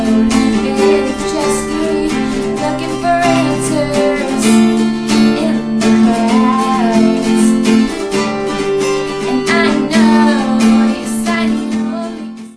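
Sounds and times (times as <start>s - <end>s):
old guitar with a new set of strings: 0.0s - 12.5s.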